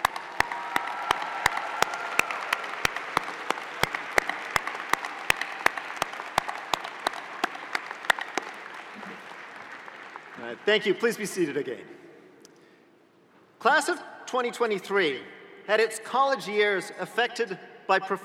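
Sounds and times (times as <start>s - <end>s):
large audience applause: 0.0s - 11.1s
speech: 10.5s - 12.0s, 13.6s - 18.2s.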